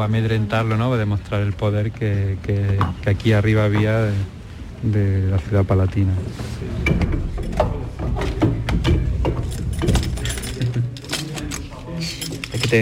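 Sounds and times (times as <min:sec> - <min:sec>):
speech: 0:00.0 - 0:08.2
faint voices: 0:03.8 - 0:12.8
armoury door opening: 0:06.7 - 0:12.8
keys jangling while unlocking an armoury door: 0:09.2 - 0:12.8.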